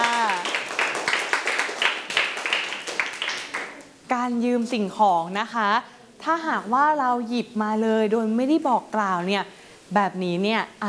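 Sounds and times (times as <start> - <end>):
children clapping for a classmate: 0.0 - 3.9
speech: 4.2 - 10.8.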